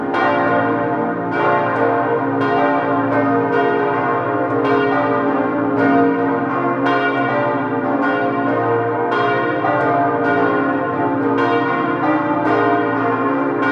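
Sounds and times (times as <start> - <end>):
church bells of the Dankeskirche in Bad Nauheim: 0.0 - 13.6.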